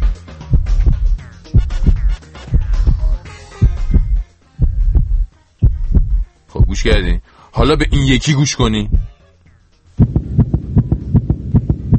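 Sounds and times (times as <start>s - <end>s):
human heartbeat: 0.5s - 7.0s, 8.8s - 9.2s, 10.0s - 11.9s
speech: 6.8s - 9.1s.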